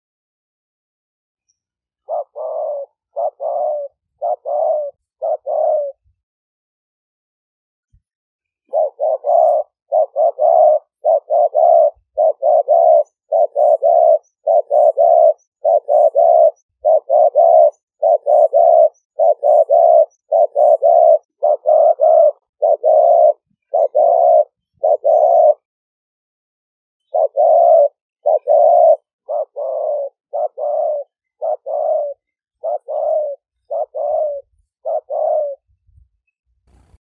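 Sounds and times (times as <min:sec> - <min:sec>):
spotted dove cooing: 0:02.0 - 0:06.1, 0:08.6 - 0:25.7, 0:27.0 - 0:36.0.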